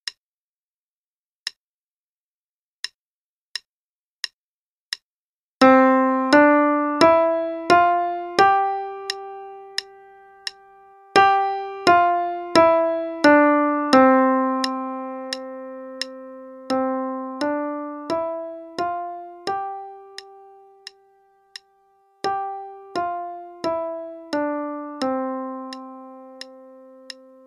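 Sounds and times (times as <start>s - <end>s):
C scale at 88 quarter notes per minute: 5.6s - 20.9s, 22.3s - 27.4s.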